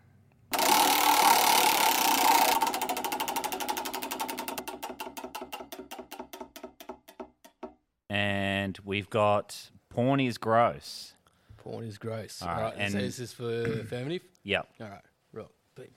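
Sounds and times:
prize wheel spinning and clicking: 0.5 - 7.2
speech: 8.1 - 15.9.

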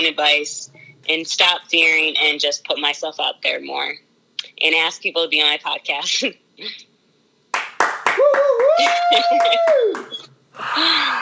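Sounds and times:
speech: 0.0 - 6.9, 8.2 - 11.1
hands clapping: 7.5 - 10.3.

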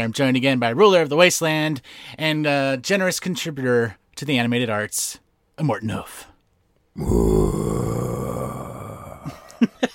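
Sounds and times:
speech: 0.0 - 6.3, 7.0 - 8.1
grunting breaths: 7.0 - 9.4
person imitating a Godzilla monster roar: 7.0 - 9.4.

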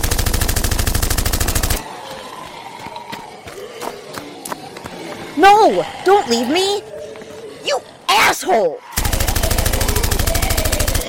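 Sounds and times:
automatic gunfire: 0.0 - 1.8, 9.0 - 11.0
scattered gunshots: 0.0 - 1.8, 9.0 - 11.0
speech: 5.4 - 6.9, 7.6 - 8.9.

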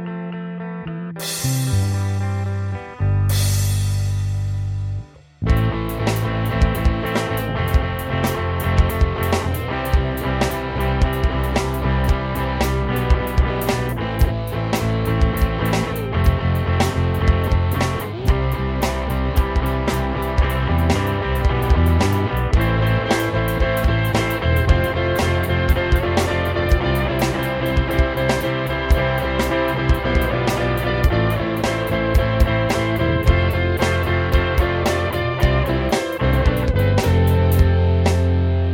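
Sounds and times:
four-four rock drum beat: 1.2 - 38.5.

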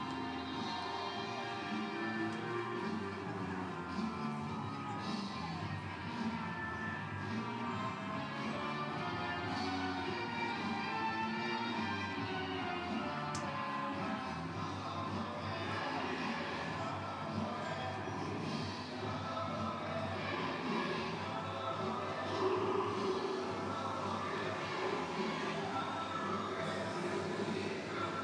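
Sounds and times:
music blaring: 0.0 - 28.2.

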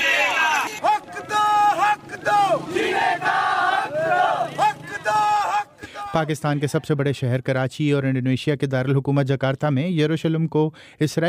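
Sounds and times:
protesters chanting slogans at Edhi Chowk in Karachi: 0.0 - 6.7
crowd noise: 0.0 - 7.1
speech: 6.2 - 11.2.

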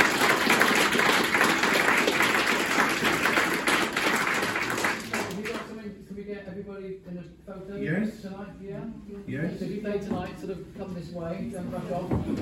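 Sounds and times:
audience applause: 0.0 - 5.6
speech: 8.4 - 12.4.

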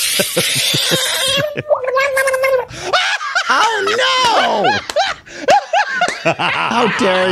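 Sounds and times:
speech: 0.2 - 2.9, 3.6 - 5.0, 6.2 - 7.3
screaming frog put in water: 0.6 - 2.6
laughter: 2.8 - 7.3.

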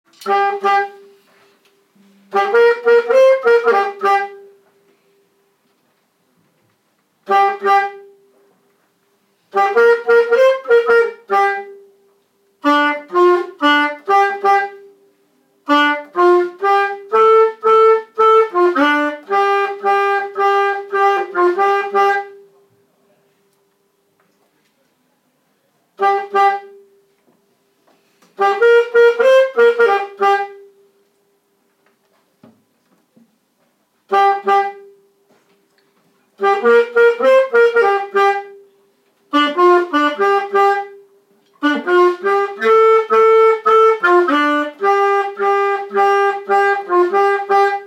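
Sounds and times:
saxophone solo: 0.2 - 4.9, 7.2 - 8.3, 9.4 - 15.0, 15.6 - 22.6, 26.0 - 27.0, 28.3 - 30.9, 34.1 - 35.1, 36.4 - 38.7, 39.3 - 47.8.

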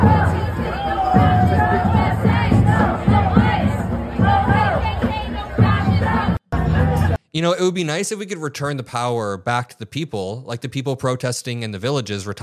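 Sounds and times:
massive crowd cheering and shouting: 0.0 - 7.2
speech: 7.4 - 12.4.

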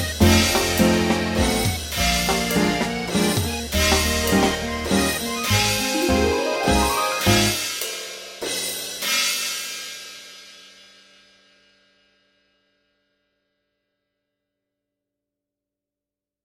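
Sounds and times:
3/4 waltz: 0.0 - 7.7.

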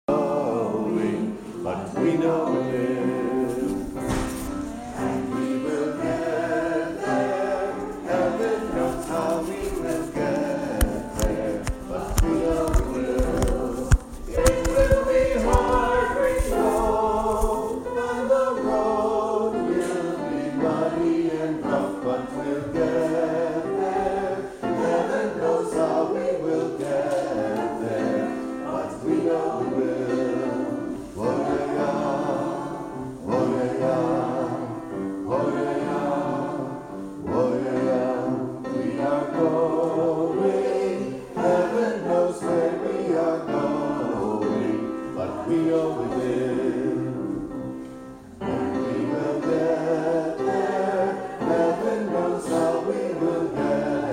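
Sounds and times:
sweet Shaker hymn: 0.0 - 54.1.

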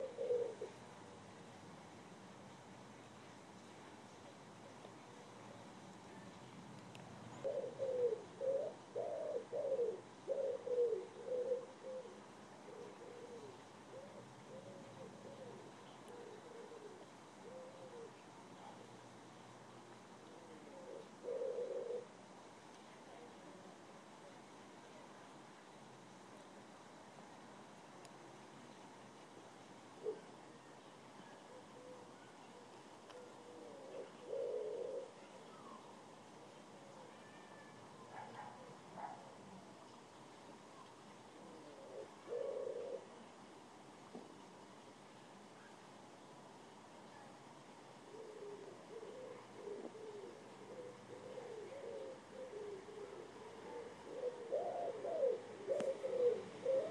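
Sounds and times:
wood pigeons cooing: 0.0 - 1.2, 7.4 - 18.9, 20.2 - 22.2, 29.9 - 30.5, 31.2 - 39.3, 41.3 - 43.3, 48.0 - 56.8.

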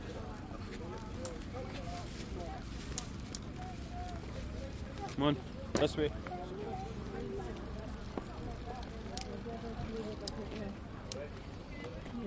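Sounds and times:
market place soundscape: 0.0 - 12.2.

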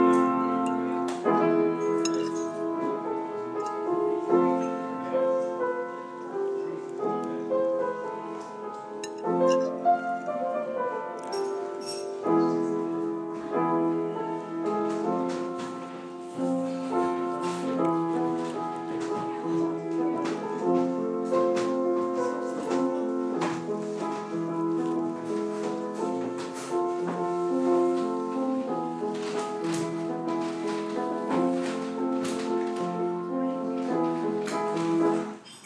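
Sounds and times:
piano in Java: 0.0 - 35.6.

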